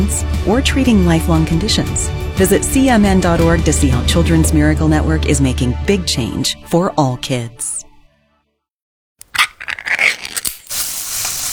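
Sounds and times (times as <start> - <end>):
speech: 0.0 - 7.7
canned meat sizzling in a hot pan: 9.3 - 11.5.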